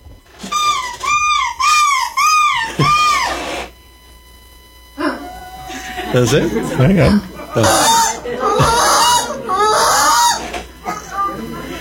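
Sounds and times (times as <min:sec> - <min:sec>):
person imitating seagull shrieks: 0:00.4 - 0:03.6, 0:07.6 - 0:11.4
speech: 0:02.8 - 0:03.0, 0:06.1 - 0:08.0
laughter: 0:05.0 - 0:11.7.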